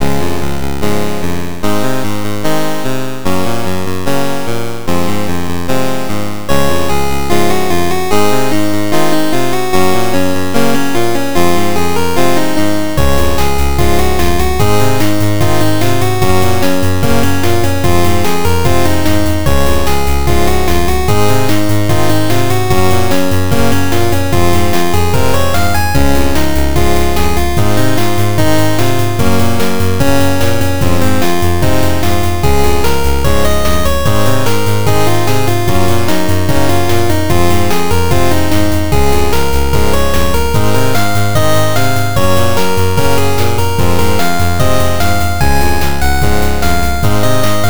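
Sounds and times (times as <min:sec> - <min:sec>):
chiptune music made with magical8bit plugin: 0:00.0 - 0:47.6.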